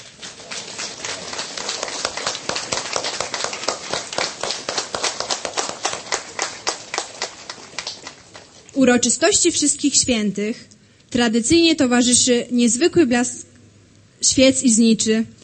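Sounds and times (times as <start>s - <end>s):
warm applause from an audience: 0.0s - 8.7s
speech: 8.8s - 13.4s, 14.4s - 15.4s.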